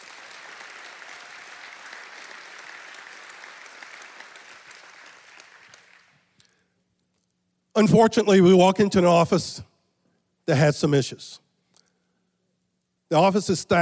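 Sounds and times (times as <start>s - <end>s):
audience applause: 0.0s - 6.3s
speech: 7.8s - 9.7s, 10.5s - 11.4s, 13.1s - 13.8s.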